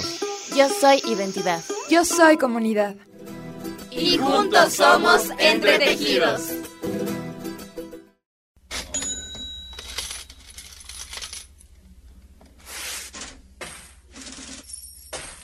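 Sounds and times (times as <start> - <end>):
speech: 0.6 - 3.1, 4.0 - 6.6
coins dropping: 8.7 - 11.5, 14.3 - 15.2.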